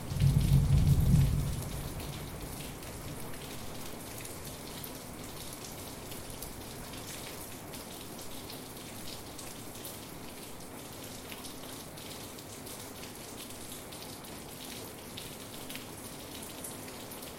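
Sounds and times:
low rumble of thunder: 0.0 - 2.5
steady rain: 0.0 - 17.3.

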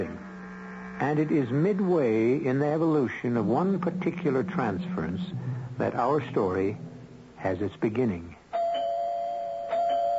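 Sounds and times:
speech: 1.0 - 8.4
doorbell ringing: 8.5 - 10.1.

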